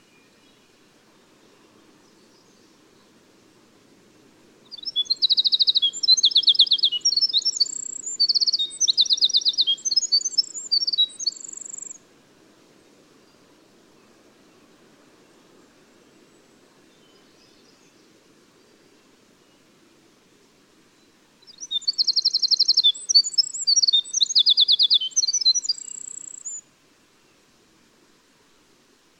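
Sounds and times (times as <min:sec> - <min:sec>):
winter wren singing: 0:04.7 - 0:12.0, 0:21.4 - 0:26.6.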